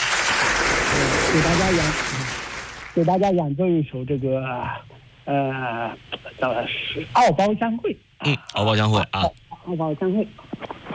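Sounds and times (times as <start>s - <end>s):
audience applause before a musical performance: 0.0s - 3.0s
speech: 1.3s - 2.1s, 3.0s - 10.7s.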